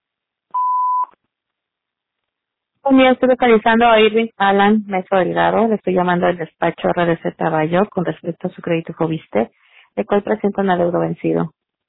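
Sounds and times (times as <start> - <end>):
voicemail tone before leaving a message: 0.6 - 1.1
speech: 2.9 - 11.8.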